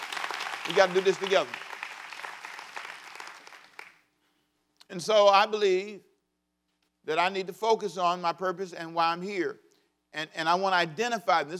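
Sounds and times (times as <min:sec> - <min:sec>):
crowd clapping: 0:00.0 - 0:04.1
speech: 0:00.7 - 0:01.6, 0:04.9 - 0:06.1, 0:07.0 - 0:11.5.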